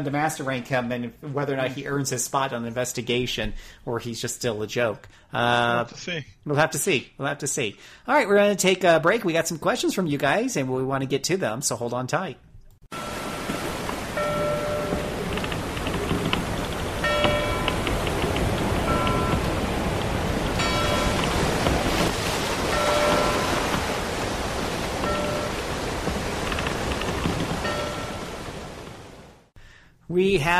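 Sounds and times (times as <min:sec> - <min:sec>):
speech: 0:00.0 - 0:13.1, 0:30.2 - 0:30.5
ship's bell ringing: 0:12.9 - 0:15.7, 0:17.0 - 0:18.0, 0:18.7 - 0:21.6, 0:22.7 - 0:24.2, 0:25.0 - 0:25.8, 0:27.6 - 0:28.4
harbor waves and surf: 0:12.9 - 0:29.5.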